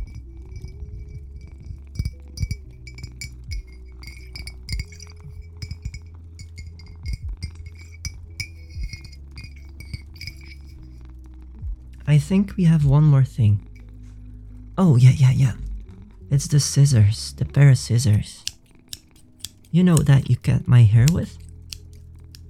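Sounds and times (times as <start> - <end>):
water bottle clinking: 0.0 - 10.8
low steady hum: 0.0 - 22.4
speech: 12.1 - 13.7, 14.8 - 15.6, 16.3 - 18.5, 19.7 - 21.4.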